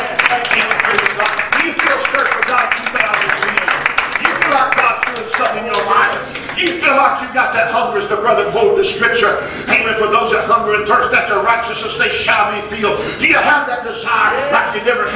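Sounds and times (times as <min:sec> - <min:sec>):
audience hand clapping: 0:00.0 - 0:06.9
speech: 0:07.6 - 0:15.1.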